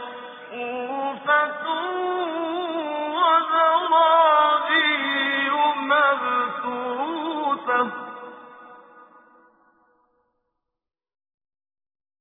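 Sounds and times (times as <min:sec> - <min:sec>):
tajwid recitation of a Quran surah: 0:00.0 - 0:09.5.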